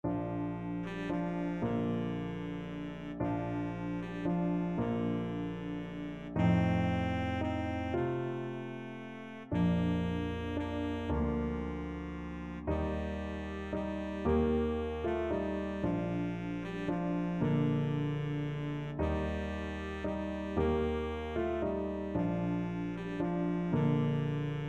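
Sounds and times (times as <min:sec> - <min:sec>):
baritone saxophone: 0:00.0 - 0:24.6.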